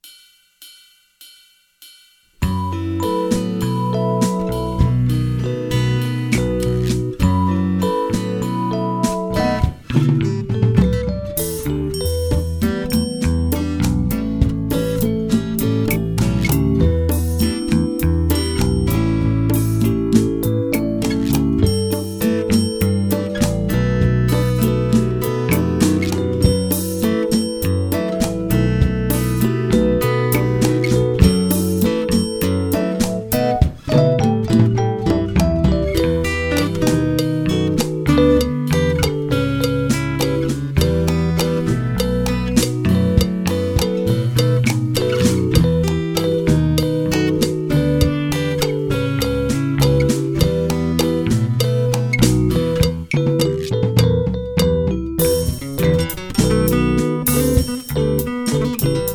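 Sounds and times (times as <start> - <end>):
bossa nova music: 2.4 - 59.1.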